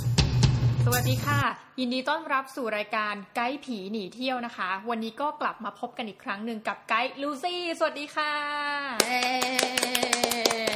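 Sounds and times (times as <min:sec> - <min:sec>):
speech: 0:00.9 - 0:10.7
show host clapping her hands: 0:09.0 - 0:10.7.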